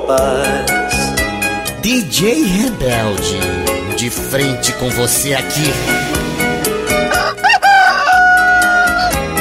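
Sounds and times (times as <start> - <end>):
speech: 0.1 - 0.8, 1.8 - 6.5
loud driving music with a steady pounding beat: 1.8 - 8.6
rooster crowing: 7.0 - 9.3.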